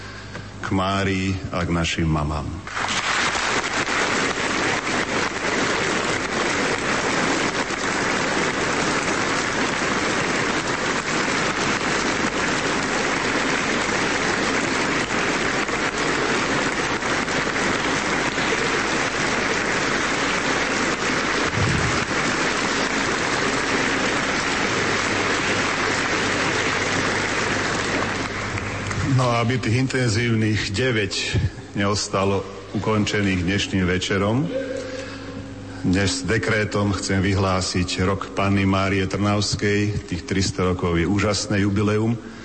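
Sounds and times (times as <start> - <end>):
speech: 0.7 - 2.8, 29.5 - 34.6, 35.8 - 42.3
large audience applause: 2.7 - 30.2.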